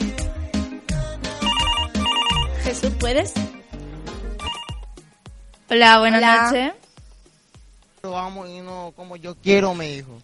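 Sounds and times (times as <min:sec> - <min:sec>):
telephone electronic ringtone of an incoming call on a radio call-in show: 0:01.4 - 0:02.6, 0:04.4 - 0:04.9
speech: 0:02.7 - 0:03.6, 0:05.7 - 0:06.8, 0:08.0 - 0:10.2.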